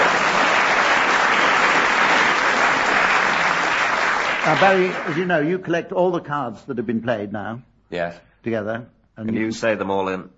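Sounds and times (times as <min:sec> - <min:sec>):
audience applause: 0:00.0 - 0:05.6
speech: 0:04.5 - 0:10.3.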